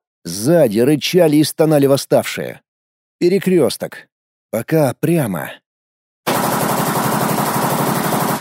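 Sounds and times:
speech: 0:00.5 - 0:05.6
assault rifle firing a full magazine: 0:06.3 - 0:08.3.

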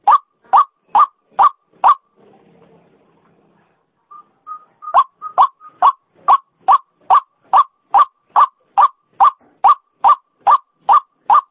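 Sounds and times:
white-breasted waterhen whistled and croaking notes: 0:00.0 - 0:02.0, 0:04.1 - 0:11.4.

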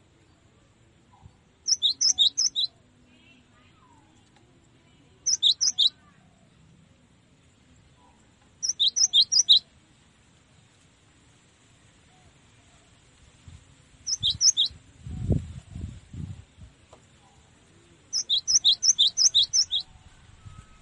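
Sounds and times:
cinereous tit song for training cage birds: 0:01.6 - 0:02.8, 0:05.3 - 0:06.0, 0:08.6 - 0:09.6, 0:14.1 - 0:14.8, 0:18.1 - 0:19.9.

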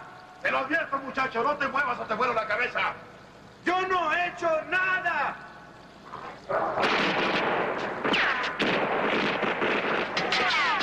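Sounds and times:
speech: 0:00.4 - 0:05.5, 0:06.5 - 0:07.3
heavy gunfire in an action scene from the film First Blood: 0:06.8 - 0:10.8.

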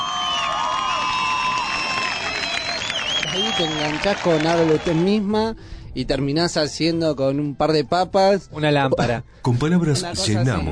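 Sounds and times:
crowd screaming with excitement: 0:00.0 - 0:05.2
speech: 0:03.6 - 0:10.7.

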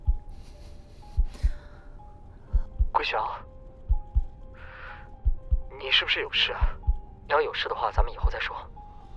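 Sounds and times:
heavy uneven breathing: 0:00.2 - 0:02.8
speech: 0:03.0 - 0:03.5, 0:05.8 - 0:08.7.

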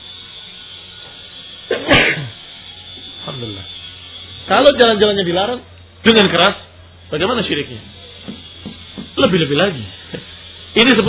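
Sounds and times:
sneeze: 0:01.7 - 0:02.3
speech: 0:04.5 - 0:08.4, 0:09.2 - 0:11.0.

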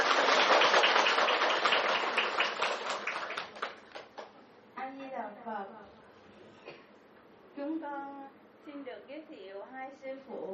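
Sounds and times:
audience applause welcoming the teacher: 0:00.0 - 0:04.3.

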